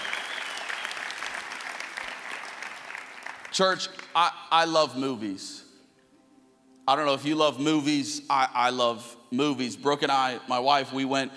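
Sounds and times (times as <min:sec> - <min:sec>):
audience applauding the worship team: 0:00.0 - 0:04.2
speech: 0:03.6 - 0:05.6, 0:06.9 - 0:11.3.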